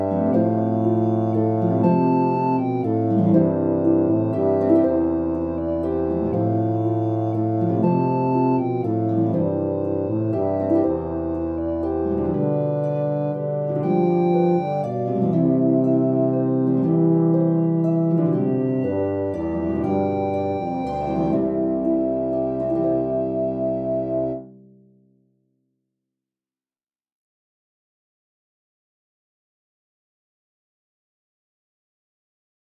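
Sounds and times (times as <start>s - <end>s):
tuba melody: 0.0s - 24.5s.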